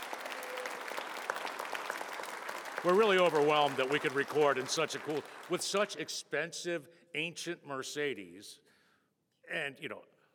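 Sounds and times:
audience applause at the Saratoga Automobile Museum: 0:00.0 - 0:06.1
speech: 0:02.8 - 0:08.7, 0:09.5 - 0:10.1.

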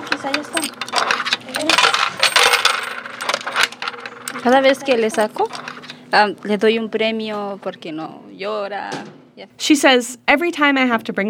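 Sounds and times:
coins dropping into a vending machine: 0:00.0 - 0:06.0
speech: 0:04.4 - 0:11.2.

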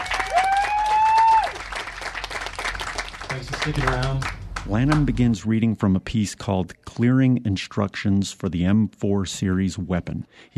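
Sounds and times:
audience applauding to welcome a performer at a reading event: 0:00.0 - 0:05.2
speech: 0:03.4 - 0:10.5.

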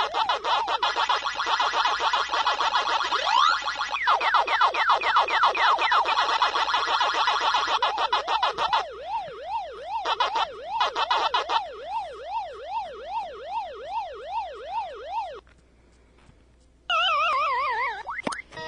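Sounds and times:
looping electronic siren from an arcade game, Pac-Man ghosts' chase tone: 0:00.0 - 0:15.4, 0:16.9 - 0:18.6.

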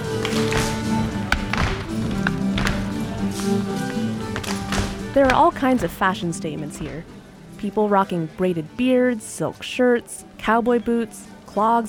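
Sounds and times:
contra dancers clapping: 0:00.0 - 0:05.4
contra dancers stomping: 0:00.0 - 0:06.2
dense crowd hum: 0:00.0 - 0:08.2
speech: 0:05.2 - 0:11.8.

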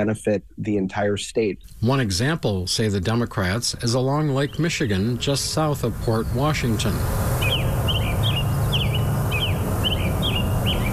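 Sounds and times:
speech: 0:00.0 - 0:07.3
birds singing in small woods on a lake bluff: 0:03.1 - 0:10.9.

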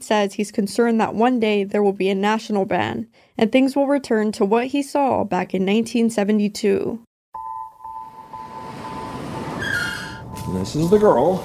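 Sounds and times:
speech: 0:00.0 - 0:07.1, 0:10.5 - 0:11.4
hangar door rolling open: 0:08.4 - 0:11.4.

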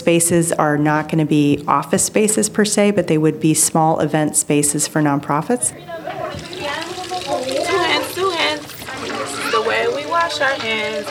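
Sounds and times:
speech: 0:00.0 - 0:06.9, 0:10.3 - 0:11.0
children chattering: 0:05.3 - 0:11.0
tap water running as children wash their hands at a Head Start preschool: 0:05.7 - 0:11.0.

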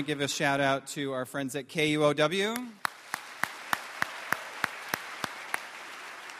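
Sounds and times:
speech: 0:00.0 - 0:02.8
slow steady hand claps: 0:02.5 - 0:06.3.

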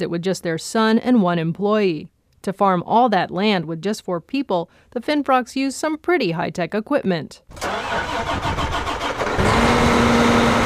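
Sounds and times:
speech: 0:00.0 - 0:08.6
large diesel tractor engine cranking and idling: 0:07.5 - 0:10.6.

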